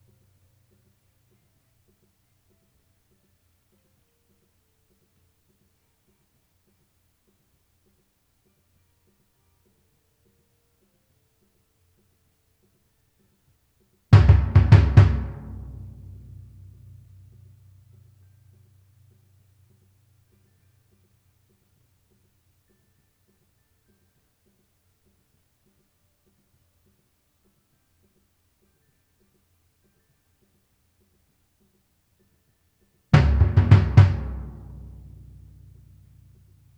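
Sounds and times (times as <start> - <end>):
timpani: 14.2 - 17.9, 33.2 - 36.7.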